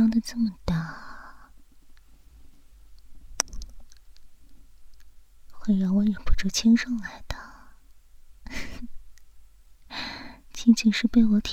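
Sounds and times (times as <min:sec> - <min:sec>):
speech: 0:00.2 - 0:01.0, 0:05.7 - 0:07.3, 0:10.6 - 0:11.5
heavy open-mouthed breathing: 0:09.9 - 0:10.4.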